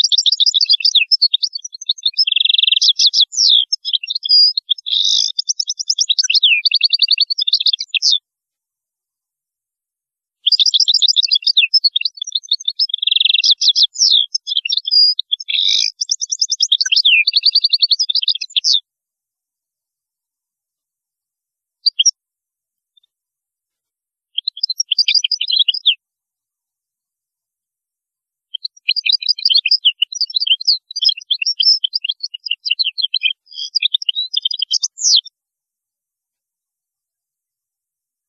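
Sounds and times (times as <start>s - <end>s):
European goldfinch twittering song: 0.0s - 8.2s, 10.4s - 18.8s, 21.8s - 22.1s, 24.4s - 26.0s, 28.6s - 35.3s.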